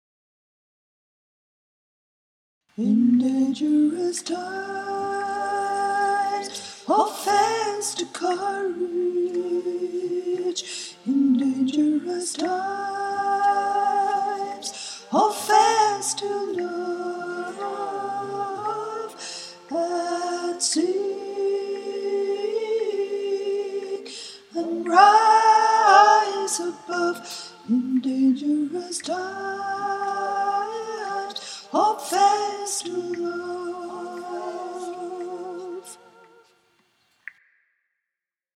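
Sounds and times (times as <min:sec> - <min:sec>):
soprano choir singing: 0:02.8 - 0:36.6.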